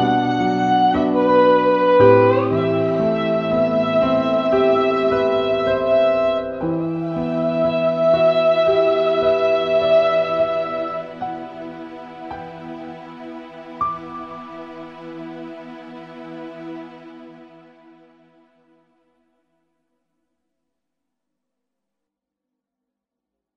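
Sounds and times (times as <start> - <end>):
violin: 0.0 - 18.4
piano: 0.0 - 18.7.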